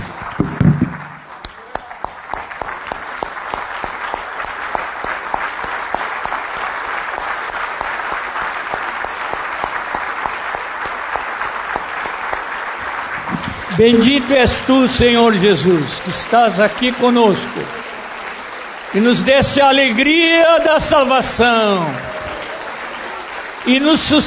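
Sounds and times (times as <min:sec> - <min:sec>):
audience applauding while standing: 0:00.0 - 0:24.2
speech: 0:13.8 - 0:17.8, 0:18.9 - 0:22.0, 0:23.7 - 0:24.2.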